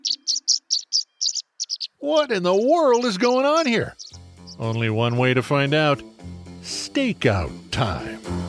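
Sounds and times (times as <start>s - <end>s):
tree swallow chirping: 0.0s - 5.0s
speech: 2.0s - 4.0s, 4.6s - 6.1s, 6.9s - 8.3s.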